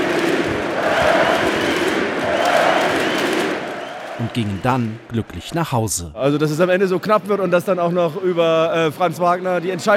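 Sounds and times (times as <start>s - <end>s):
arena crowd chanting MVP and cheering: 0.0s - 5.4s
speech: 4.4s - 9.9s.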